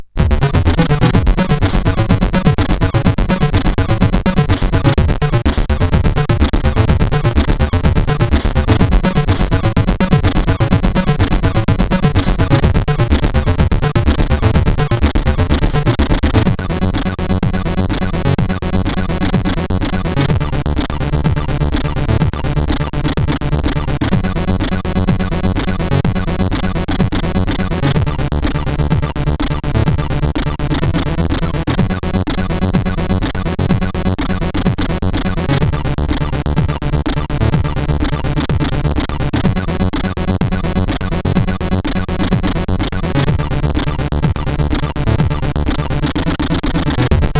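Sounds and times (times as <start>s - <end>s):
PAL SID CSG8580R5 chip music: 0.1s - 47.3s.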